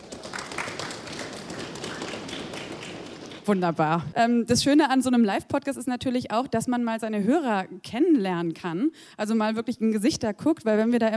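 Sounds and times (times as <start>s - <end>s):
audience stomping feet: 0.0s - 3.6s
speech: 3.5s - 11.1s.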